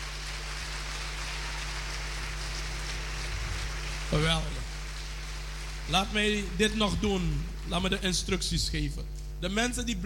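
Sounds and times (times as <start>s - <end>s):
loud crowd applause: 0.0s - 7.7s
speech: 4.1s - 4.6s, 5.9s - 10.0s.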